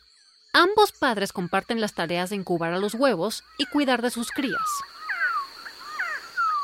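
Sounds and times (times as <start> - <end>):
speech: 0.6 - 5.0
Resplendent Quetzal calls: 3.3 - 6.6.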